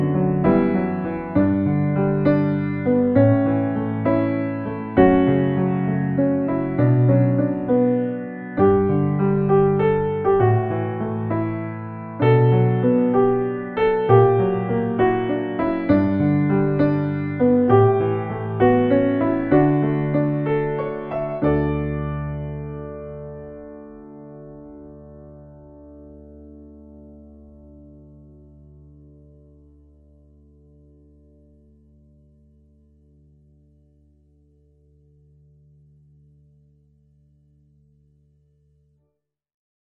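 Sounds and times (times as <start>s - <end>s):
piano sketch: 0.0s - 29.8s.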